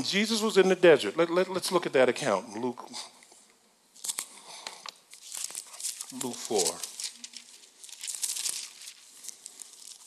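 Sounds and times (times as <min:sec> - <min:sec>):
speech: 0:00.0 - 0:03.2, 0:06.1 - 0:06.9
pages of a paper Bible rustling: 0:04.0 - 0:10.0.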